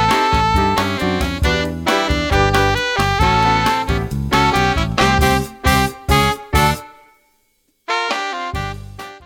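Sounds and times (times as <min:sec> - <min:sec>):
jazz club alto saxophone: 0:00.0 - 0:07.2, 0:07.9 - 0:09.2.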